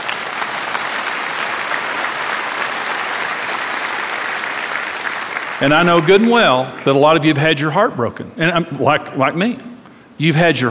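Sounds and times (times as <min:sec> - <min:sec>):
audience applause: 0:00.0 - 0:07.3
speech: 0:05.6 - 0:10.6.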